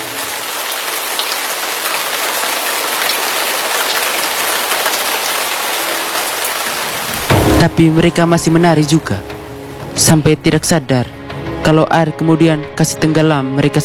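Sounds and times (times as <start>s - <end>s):
heavy rain falling: 0.0s - 10.2s
speech: 7.6s - 9.3s, 10.0s - 13.8s.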